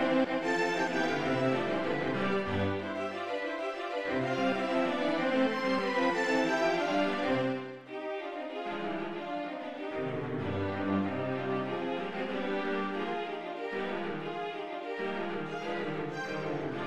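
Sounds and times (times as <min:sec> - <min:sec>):
string quartet in C major from MIDI: 0:00.0 - 0:16.8.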